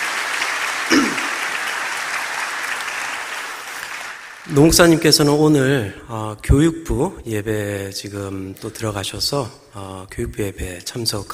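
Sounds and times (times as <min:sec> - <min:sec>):
audience applause: 0:00.0 - 0:05.0
speech: 0:04.5 - 0:11.3.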